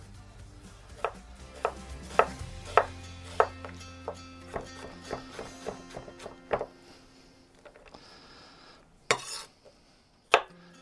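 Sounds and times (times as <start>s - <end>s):
knife dicing a red onion on a cutting board: 1.0s - 6.7s, 9.1s - 9.5s.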